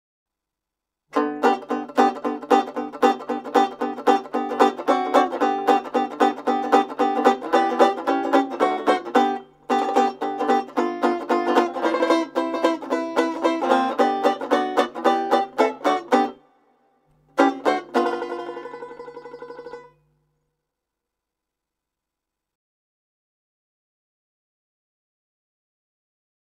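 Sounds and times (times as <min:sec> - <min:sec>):
banjo: 0:01.1 - 0:16.6, 0:17.2 - 0:20.1.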